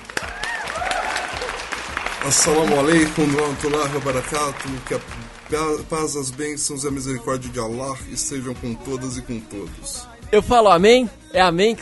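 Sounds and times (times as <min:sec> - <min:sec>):
crowd applause: 0:00.0 - 0:06.3
speech: 0:02.2 - 0:11.8.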